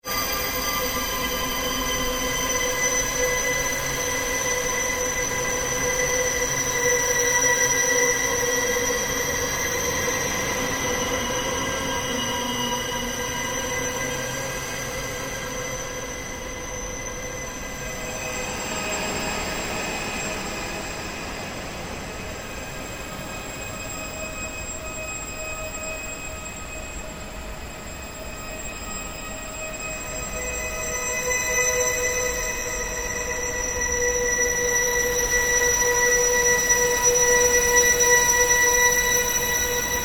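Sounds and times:
ambient drone: 0.1 - 40.0.

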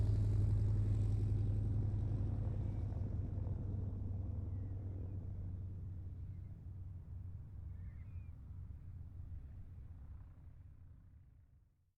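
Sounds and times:
CAC Wirraway aircraft taxiing: 0.0 - 6.4.

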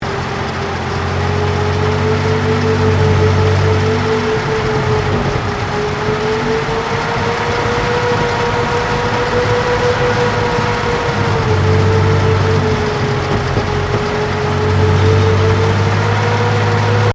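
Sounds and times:
British Centurion main battle tank manoeuvring during offload: 0.0 - 17.1.

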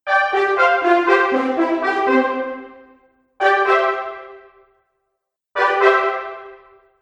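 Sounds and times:
fanfare: 0.1 - 4.2.

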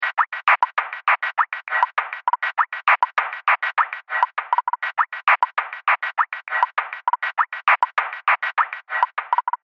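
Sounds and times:
lo-fi beats loop: 0.0 - 9.6.

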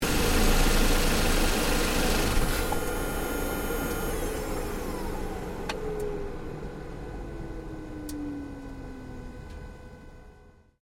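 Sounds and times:
Ford Focus engine shutting down in the engine bay: 0.0 - 10.4.

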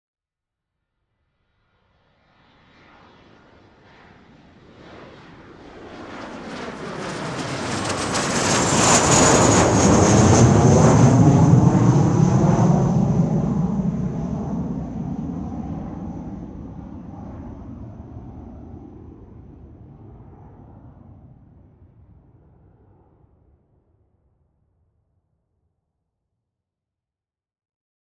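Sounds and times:
private jet aircraft passing by: 2.5 - 21.3.

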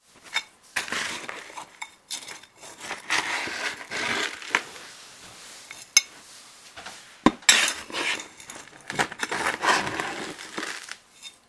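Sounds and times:
trowel moving gritty dirt: 0.2 - 4.9, 7.4 - 11.4.

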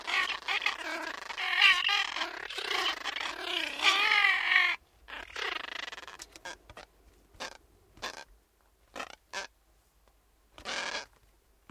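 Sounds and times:
several gulls giving harmonic calls: 0.0 - 6.1.

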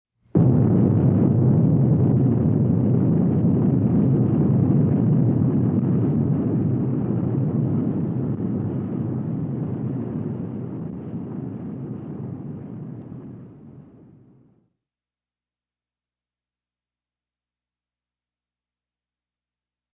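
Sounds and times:
explosion: 0.3 - 14.5.

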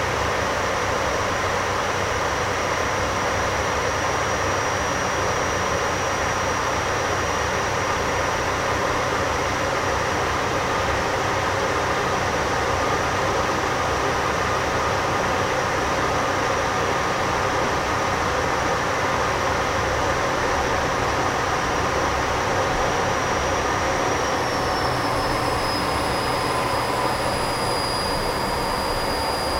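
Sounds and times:
CA-27 Sabre jet aircraft flying heard from the interior: 0.0 - 29.5.

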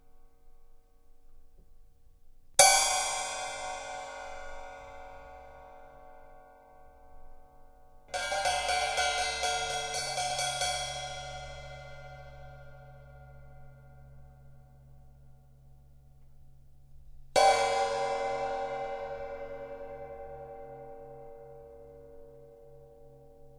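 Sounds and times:
cymbal hits: 2.6 - 6.3, 8.1 - 13.7, 17.4 - 21.9.

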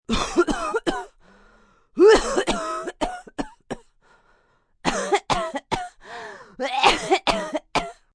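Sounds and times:
sick woman with a cold dry cough: 0.1 - 1.2, 2.0 - 3.9, 4.9 - 6.0, 6.6 - 8.1.

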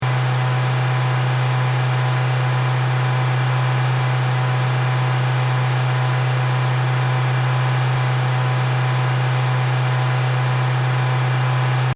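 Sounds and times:
Mazda 3 car engine at high RPM: 0.0 - 11.9.

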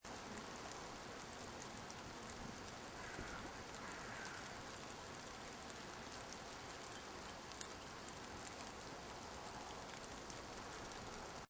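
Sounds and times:
light rain: 0.0 - 11.4
distant crow cawing: 2.9 - 4.9.

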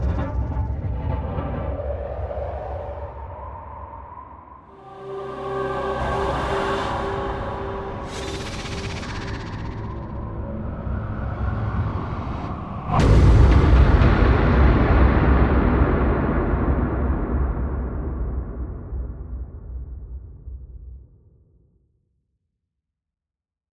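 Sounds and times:
ghostly haunting horror composition: 0.1 - 18.7.

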